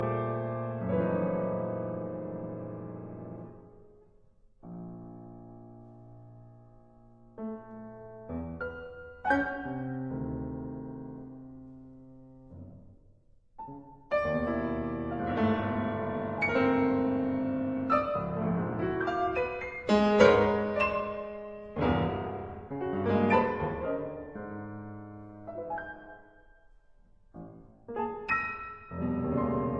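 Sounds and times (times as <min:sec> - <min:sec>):
piano sonata: 0:00.0 - 0:29.7.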